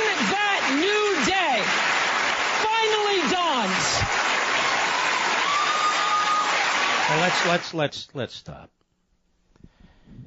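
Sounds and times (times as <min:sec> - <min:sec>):
audience applause: 0:00.0 - 0:07.8
speech: 0:07.3 - 0:08.8.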